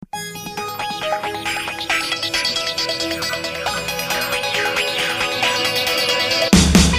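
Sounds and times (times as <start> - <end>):
electronic tone: 0.2 - 6.6.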